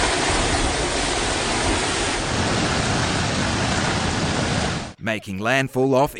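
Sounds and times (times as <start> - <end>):
downpours: 0.0 - 5.0
typhoon wind: 0.0 - 5.0
speech: 5.1 - 6.1.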